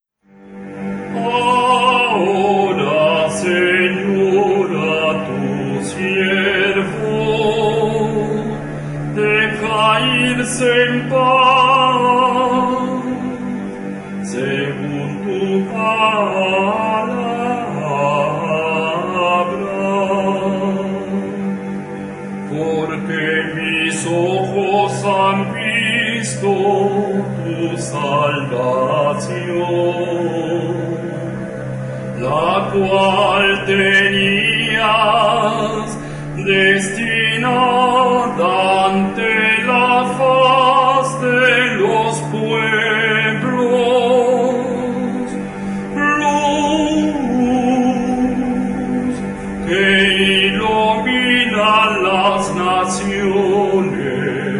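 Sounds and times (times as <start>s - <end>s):
chant: 0.3s - 54.5s.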